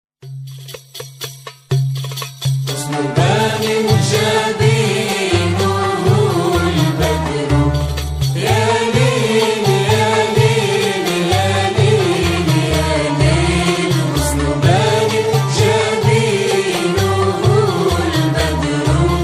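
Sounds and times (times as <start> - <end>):
Andalusian Arabic muwashshah song: 2.7 - 19.2.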